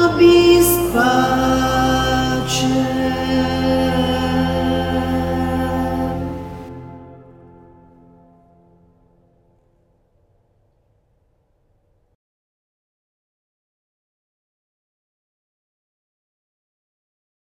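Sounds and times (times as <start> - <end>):
contraltos singing an Agnus Dei: 0.0 - 7.0.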